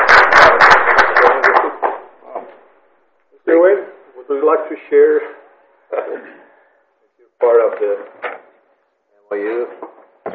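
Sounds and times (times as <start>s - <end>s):
small group applauding at a county award presentation: 0.0s - 2.7s
speech: 4.5s - 5.4s, 7.5s - 8.2s, 9.3s - 9.8s.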